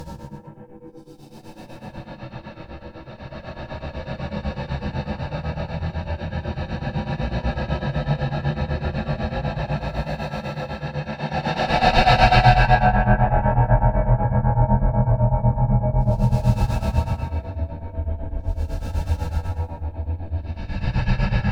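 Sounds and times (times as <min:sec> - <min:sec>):
alien breathing sound design: 0:01.6 - 0:14.4, 0:15.2 - 0:21.4.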